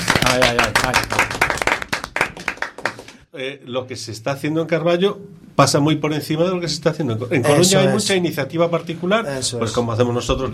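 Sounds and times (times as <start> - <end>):
audience clapping: 0.0 - 3.2
speech: 0.3 - 1.2, 3.4 - 10.5.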